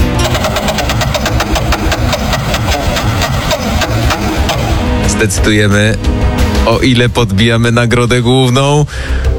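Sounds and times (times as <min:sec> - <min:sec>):
game-show prize wheel spinning: 0:00.2 - 0:05.0
speech: 0:05.2 - 0:09.3.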